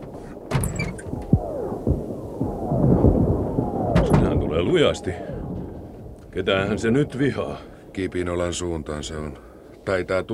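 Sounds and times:
distant artillery gunfire: 0.0 - 8.0
steady rumbling background: 0.0 - 10.3
speech: 4.6 - 5.3, 6.4 - 10.3.

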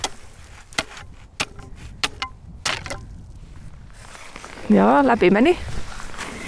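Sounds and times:
ice chisel striking lake ice: 0.0 - 3.2
low wind-like rumble: 0.0 - 6.4
speech: 4.7 - 5.8.

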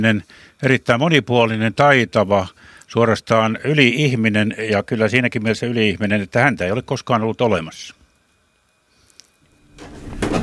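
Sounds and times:
speech: 0.0 - 8.0
wooden floorboards creaking in a house built in 1815: 9.7 - 10.4.

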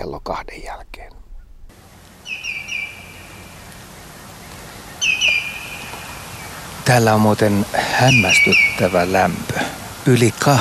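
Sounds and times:
speech: 0.0 - 1.2, 6.9 - 10.5
common greenshank calling while flying overhead: 2.2 - 6.8, 7.9 - 9.3.

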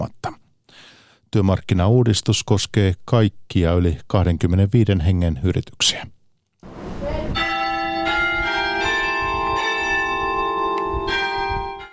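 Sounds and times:
speech: 1.3 - 6.2
Hallgrímskirkja church bells ringing in Reykjavík: 7.4 - 11.9.

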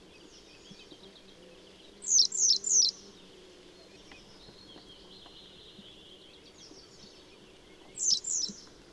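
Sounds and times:
faint chirps: 0.1 - 8.7
Keltavästäräkki calls: 2.0 - 3.1, 7.8 - 8.7.

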